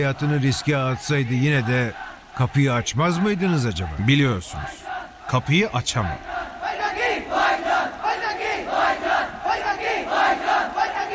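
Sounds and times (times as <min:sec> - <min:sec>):
speech: 0:00.0 - 0:06.4
large crowd shouting in chant-like waves: 0:00.0 - 0:11.1.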